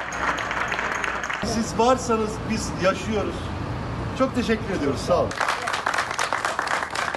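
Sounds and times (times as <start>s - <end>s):
applause from balconies: 0.0s - 1.5s, 5.3s - 7.1s
speech: 1.4s - 3.6s, 4.2s - 5.5s.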